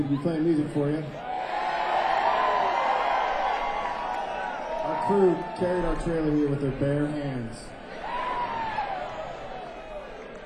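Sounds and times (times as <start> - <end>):
speech: 0.0 - 1.3, 4.9 - 7.8
audience whooping: 1.2 - 5.9, 7.9 - 10.4.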